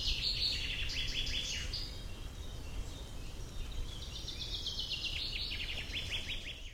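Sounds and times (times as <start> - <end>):
bird song: 0.0 - 6.7.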